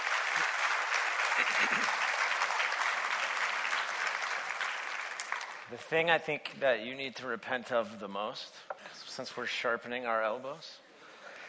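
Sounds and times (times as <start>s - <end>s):
audience applause: 0.0s - 5.7s
speech: 5.7s - 10.8s.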